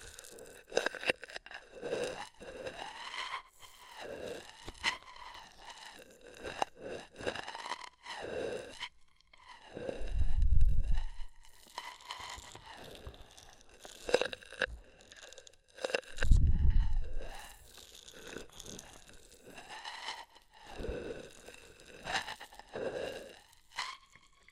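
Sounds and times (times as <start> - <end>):
ear massage with oil and foam squishing and rubbing: 0.0 - 24.5.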